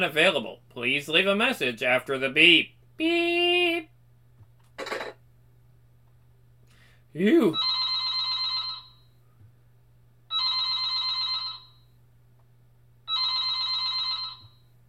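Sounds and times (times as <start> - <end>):
speech: 0.0 - 3.9, 7.1 - 7.7
telephone ringing: 7.6 - 9.1, 10.3 - 11.9, 13.1 - 14.7.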